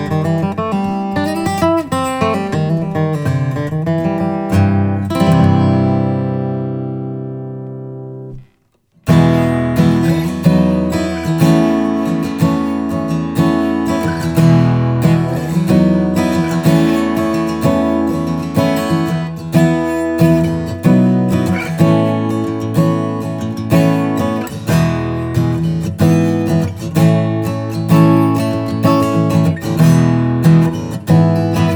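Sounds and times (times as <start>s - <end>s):
Martin HD-35 sunburst acoustic guitar: 0.0s - 31.7s.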